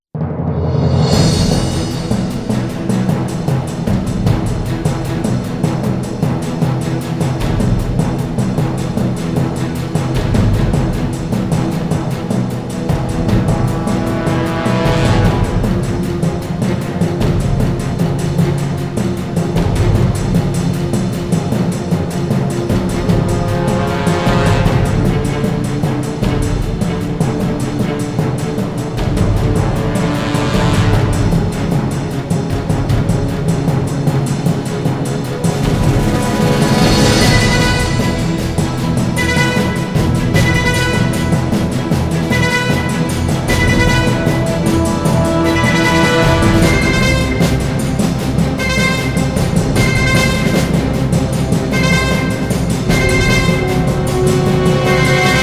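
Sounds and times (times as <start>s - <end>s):
instrumental music: 0.4s - 55.4s.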